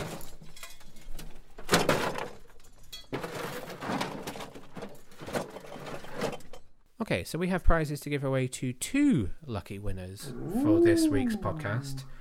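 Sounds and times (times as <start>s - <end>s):
rummaging through a cupboard: 0.0s - 6.8s
speech: 7.1s - 12.1s.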